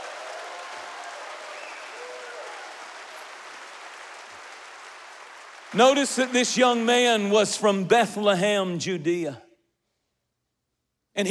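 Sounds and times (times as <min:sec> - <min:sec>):
audience clapping hands: 0:00.0 - 0:07.7
speech: 0:05.7 - 0:09.4.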